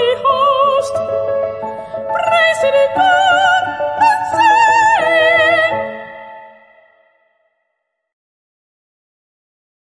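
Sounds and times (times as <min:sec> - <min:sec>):
piano playing: 0:00.0 - 0:07.0.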